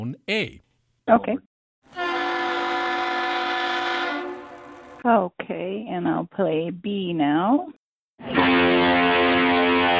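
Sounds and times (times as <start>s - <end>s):
speech: 0.0s - 1.5s, 5.0s - 9.9s
lift bridge horn blast: 1.9s - 5.0s.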